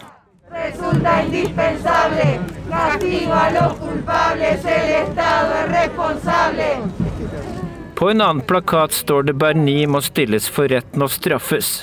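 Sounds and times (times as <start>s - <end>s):
protesters chanting: 0.0s - 7.2s
speech: 0.7s - 11.8s.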